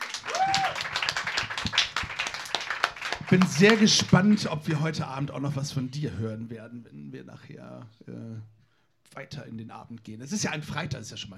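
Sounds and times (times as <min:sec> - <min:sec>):
audience clapping: 0:00.0 - 0:04.6
speech: 0:03.3 - 0:11.3.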